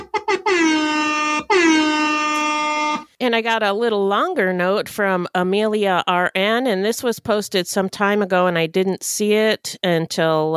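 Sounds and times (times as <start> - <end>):
hip-hop air horn sound effect blasts: 0.0 - 3.1
speech: 3.2 - 10.5.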